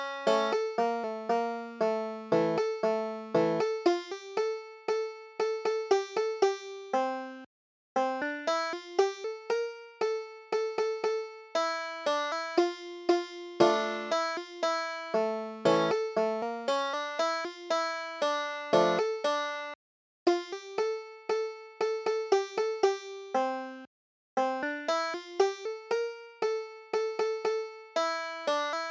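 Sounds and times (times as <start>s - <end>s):
Klezmer banjo music: 0.0s - 28.8s.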